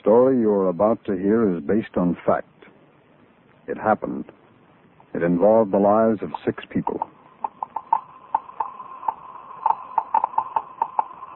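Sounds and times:
speech: 0.1 - 2.6, 3.7 - 4.4, 5.1 - 7.1
Geiger counter clicking as it detects radioactivity: 6.2 - 11.3.

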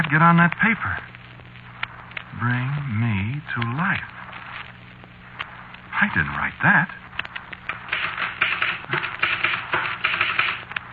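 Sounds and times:
speech: 0.1 - 1.1, 2.4 - 4.2, 6.0 - 7.0, 8.9 - 9.2
typewriter keys typing: 7.9 - 10.9.

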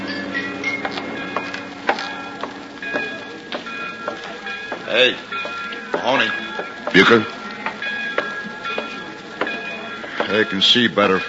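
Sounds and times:
faint high whine: 0.0 - 11.2
passenger train wheels clacking on rails: 0.0 - 11.2
speech: 4.9 - 5.4, 6.0 - 7.4, 10.3 - 11.2.

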